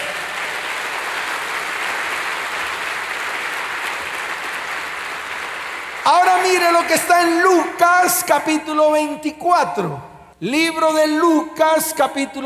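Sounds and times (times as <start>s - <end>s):
audience applause: 0.0s - 7.2s
speech: 6.1s - 12.4s.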